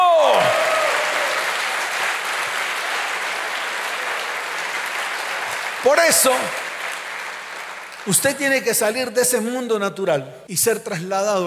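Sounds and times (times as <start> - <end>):
audience applause: 0.0 - 8.6
speech: 5.9 - 6.6, 8.0 - 11.4.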